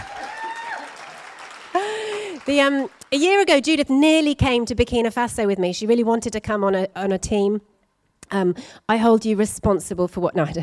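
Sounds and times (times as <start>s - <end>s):
audience round of applause: 0.0s - 3.1s
speech: 2.5s - 7.7s, 8.3s - 10.6s.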